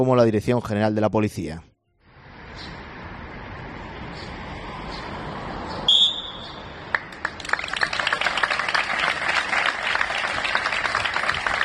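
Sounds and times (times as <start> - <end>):
speech: 0.0 - 1.7
applause in official workplaces: 6.9 - 11.6.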